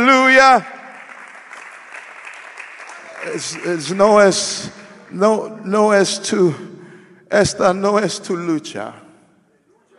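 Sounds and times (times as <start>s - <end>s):
speech: 0.1s - 0.8s, 3.2s - 9.0s
audience applauding: 0.8s - 4.2s.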